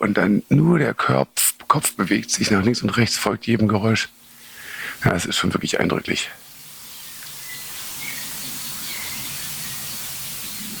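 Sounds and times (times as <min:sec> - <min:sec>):
speech: 0:00.0 - 0:04.2, 0:05.0 - 0:06.5
outdoor hiss: 0:00.0 - 0:10.7
small songbirds calling: 0:04.0 - 0:05.1, 0:06.3 - 0:10.7.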